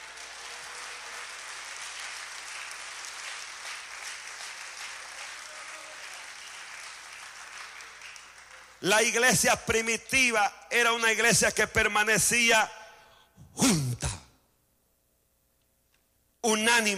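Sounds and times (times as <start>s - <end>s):
audience applause: 0.0s - 8.8s
speech: 8.8s - 12.8s, 13.6s - 13.8s, 16.4s - 16.9s.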